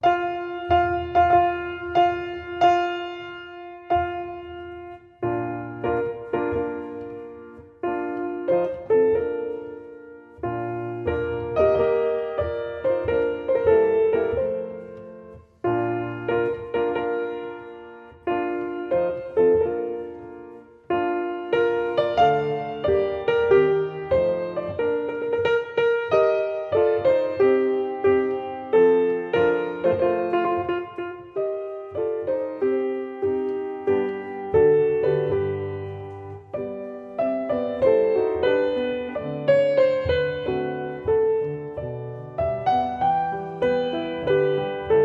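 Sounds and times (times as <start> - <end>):
fast solo piano wedding piece: 0.0 - 45.0.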